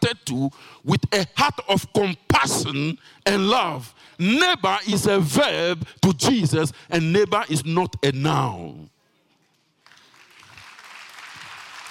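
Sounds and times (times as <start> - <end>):
speech: 0.1 - 8.9
audience clapping: 9.8 - 11.8.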